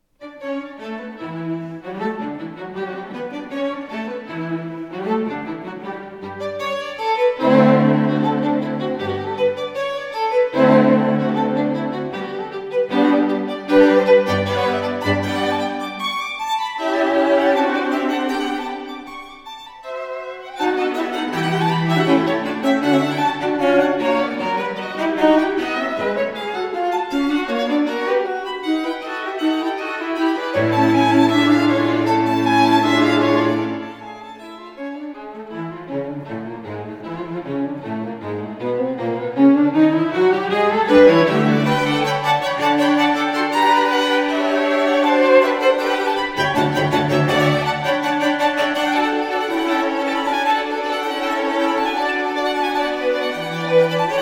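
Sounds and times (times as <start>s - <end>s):
string quartet playing a presto finale in G major: 0.2s - 54.1s.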